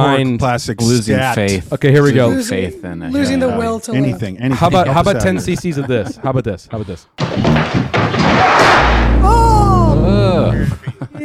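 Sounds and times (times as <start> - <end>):
speech: 0.2 - 9.4
laughter: 4.3 - 6.6, 10.4 - 11.2
heavy door slamming: 7.2 - 9.6
sustained low rumble: 8.7 - 10.7
wavering descending tones: 8.9 - 10.7.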